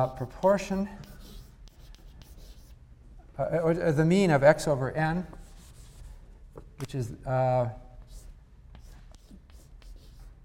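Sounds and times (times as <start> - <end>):
speech: 0.0 - 1.1, 3.4 - 5.4, 6.8 - 7.8
low hum: 0.0 - 10.4
marker or chalk writing on a board during a probability lecture: 0.4 - 2.8, 8.0 - 10.4.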